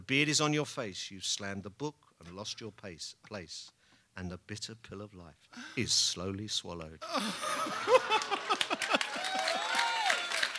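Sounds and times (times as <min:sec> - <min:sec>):
speech: 0:00.1 - 0:08.7
laughter: 0:07.0 - 0:09.5
applause: 0:07.9 - 0:10.5.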